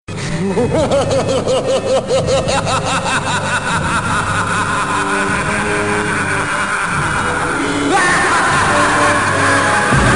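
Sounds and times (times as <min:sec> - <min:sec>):
scary predator laughing: 0:00.2 - 0:09.9.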